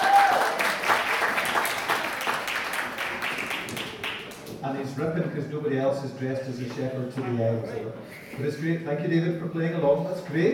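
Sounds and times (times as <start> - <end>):
crowd clapping: 0.0 - 4.6
speech: 5.0 - 10.5.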